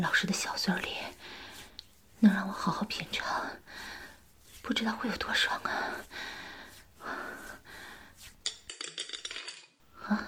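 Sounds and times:
speech: 0.0s - 1.2s, 2.2s - 3.9s, 4.6s - 6.4s, 10.1s - 10.2s
soft breathing: 0.8s - 8.4s.

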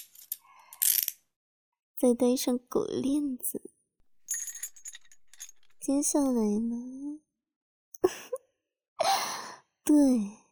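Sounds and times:
speech: 2.0s - 3.8s, 5.8s - 7.3s, 8.0s - 8.4s, 9.9s - 10.4s
handcuffs ratcheting shut: 4.2s - 5.9s.

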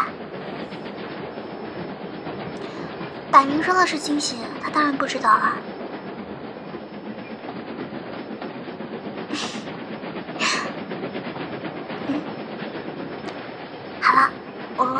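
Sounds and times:
train running on rails nearing a station: 0.0s - 14.9s
speech: 3.3s - 5.7s.

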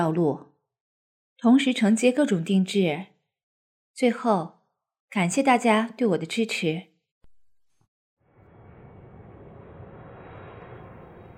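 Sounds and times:
speech: 0.0s - 0.5s, 1.4s - 3.1s, 4.0s - 6.9s
airliner engines roaring on arrival: 8.3s - 11.3s.

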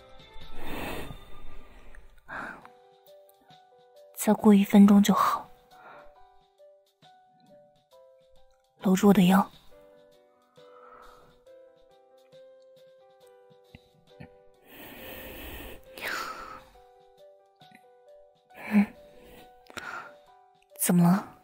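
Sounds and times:
breathy exhalations blown onto the listener's eyelids: 0.5s - 2.7s, 10.5s - 11.4s, 14.2s - 16.8s, 18.6s - 20.2s
speech: 4.2s - 5.4s, 8.9s - 9.6s.

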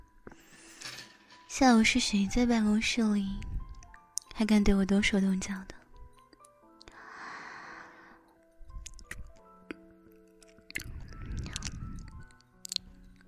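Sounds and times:
speech: 1.6s - 3.5s, 4.4s - 5.8s
chewing during a meal of home-cooked dishes: 8.3s - 13.2s.

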